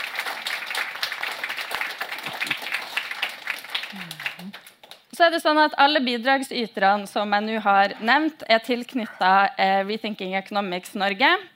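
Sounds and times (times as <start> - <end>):
audience applause: 0.0 - 5.0
speech: 5.2 - 11.5.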